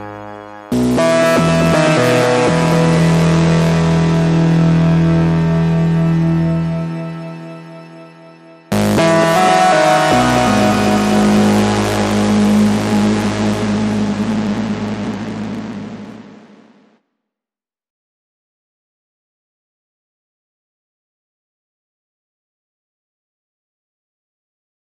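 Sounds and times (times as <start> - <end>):
main melody without drums: 0.0 - 16.8.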